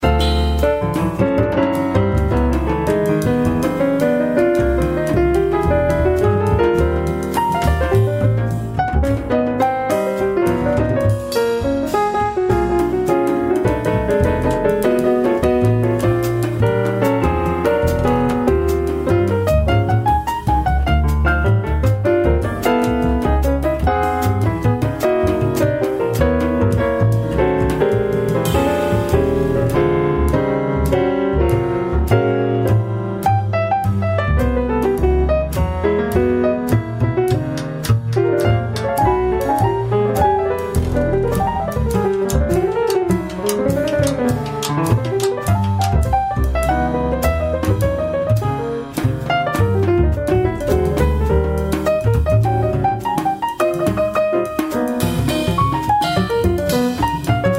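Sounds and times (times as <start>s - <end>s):
jazz music: 0.0s - 57.5s.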